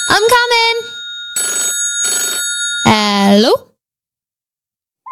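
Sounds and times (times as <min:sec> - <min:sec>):
high-pitched phone ringing: 0:00.0 - 0:03.6
speech: 0:03.3 - 0:03.6.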